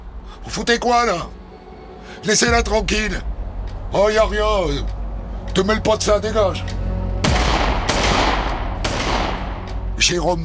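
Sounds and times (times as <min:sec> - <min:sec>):
speech: 0:00.4 - 0:01.4, 0:02.1 - 0:03.3, 0:03.9 - 0:06.8, 0:10.0 - 0:10.4
gunshots from a gun firing rubber bullets: 0:07.2 - 0:10.2.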